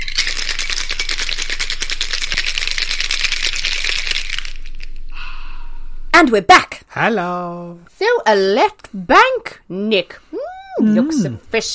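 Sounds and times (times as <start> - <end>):
cocktail being shaken: 0.0 - 4.9
speech: 6.2 - 11.7.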